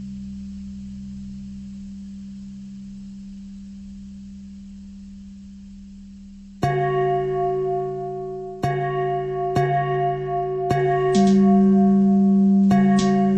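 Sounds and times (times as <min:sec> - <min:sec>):
pentatonic bell melody: 0:06.6 - 0:13.3.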